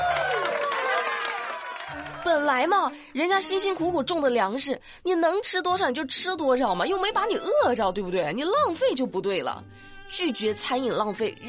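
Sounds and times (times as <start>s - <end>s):
applause: 0.0s - 2.7s
speech: 2.5s - 11.4s.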